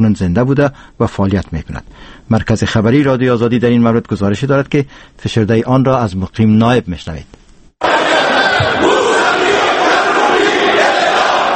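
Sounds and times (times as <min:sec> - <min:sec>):
speech: 0:00.0 - 0:08.0
parliament members chanting slogans: 0:07.8 - 0:11.5.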